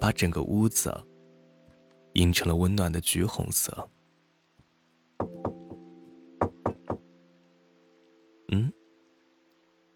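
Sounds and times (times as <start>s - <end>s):
speech: 0.0s - 1.1s, 2.2s - 4.0s
knocking on a door: 5.2s - 7.1s.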